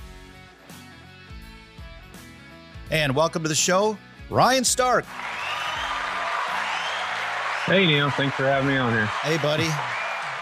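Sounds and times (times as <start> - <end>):
speech: 2.9 - 5.5, 7.7 - 10.0
crowd cheering sound effect: 5.0 - 10.4.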